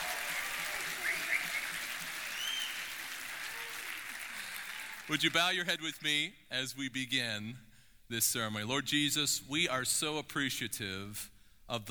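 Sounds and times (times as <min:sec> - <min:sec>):
whoops and cheers: 0:00.0 - 0:05.1
crowd applauding: 0:00.0 - 0:05.6
speech: 0:05.1 - 0:11.8.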